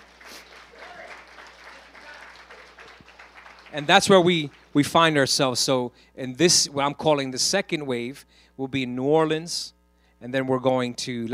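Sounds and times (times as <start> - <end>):
audience applauding: 0.0 - 4.8
speech: 3.7 - 11.3.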